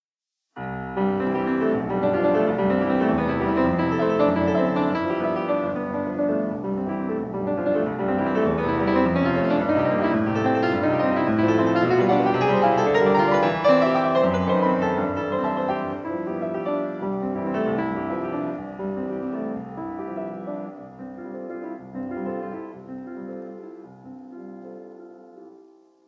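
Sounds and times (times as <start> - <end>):
classical prelude in C major: 0.6 - 26.0.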